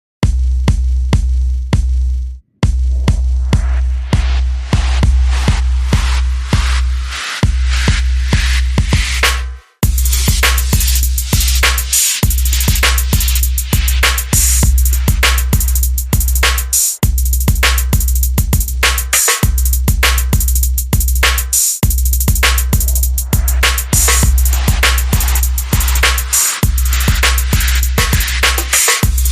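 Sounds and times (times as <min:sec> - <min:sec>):
music beat: 0:00.2 - 0:29.3.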